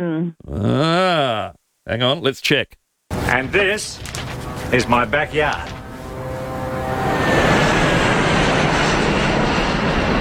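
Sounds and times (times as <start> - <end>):
speech: 0.0 - 0.8, 1.9 - 5.8
Airbus airliner roaring low over the end of a runway: 4.0 - 10.1.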